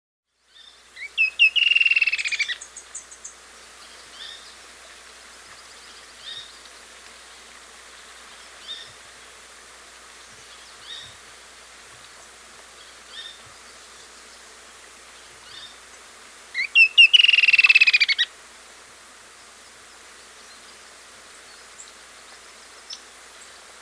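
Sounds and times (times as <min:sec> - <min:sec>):
Creamy-bellied antwren song in South America: 0:00.5 - 0:04.3, 0:16.6 - 0:18.3.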